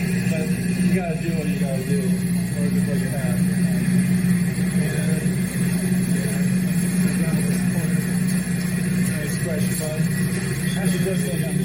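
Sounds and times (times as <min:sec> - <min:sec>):
generators running in a backyard: 0:00.0 - 0:11.6
speech: 0:01.0 - 0:05.0.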